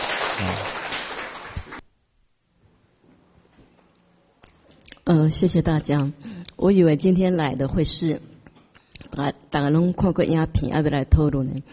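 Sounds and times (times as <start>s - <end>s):
audience applause: 0.0s - 1.8s
speech: 5.1s - 8.3s, 9.2s - 11.7s.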